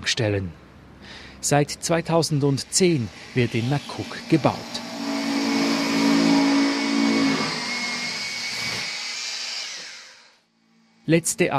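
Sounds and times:
speech: 0.1 - 4.8, 11.1 - 11.5
drilling holes in a shower: 2.5 - 10.4.

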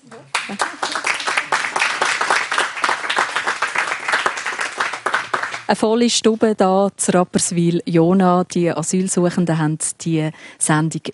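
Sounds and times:
crowd applause: 0.0 - 5.7
speech: 0.5 - 0.8, 5.7 - 11.1.

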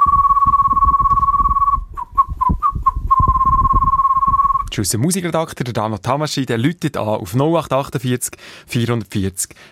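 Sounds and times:
low rumbling background: 0.0 - 4.7
person whistling: 0.0 - 4.7
speech: 4.8 - 9.7.

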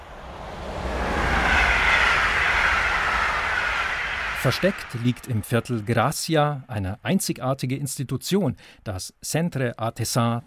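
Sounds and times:
high-speed train to Barcelona rumbling: 0.0 - 6.1
speech: 4.4 - 10.4.

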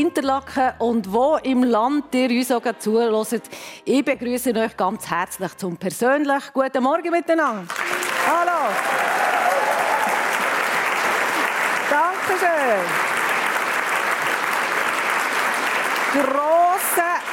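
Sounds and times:
speech: 0.0 - 9.0, 12.4 - 13.1, 16.1 - 16.6
audience applause: 7.7 - 17.3.

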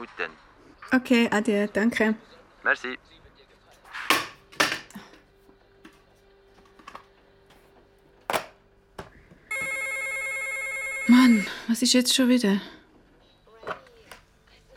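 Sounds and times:
speech: 0.0 - 3.2, 11.7 - 12.8
telephone ringing: 9.5 - 11.8.

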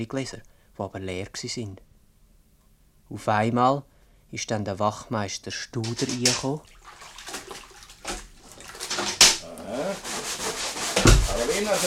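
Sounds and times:
speech: 0.0 - 1.9, 3.1 - 6.8, 11.6 - 11.8
water splashing: 5.8 - 11.8
wet scrubbing and washing: 5.8 - 11.8.

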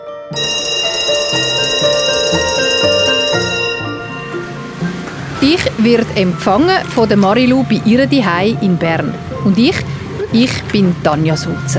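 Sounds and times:
electric school bell ringing: 0.3 - 7.0, 11.4 - 11.7
speech: 5.4 - 11.7.

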